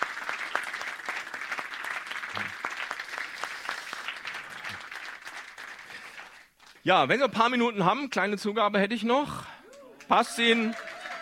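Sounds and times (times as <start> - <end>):
audience applause: 0.0 - 6.5, 10.1 - 11.1
speech: 6.8 - 9.5, 10.1 - 10.9.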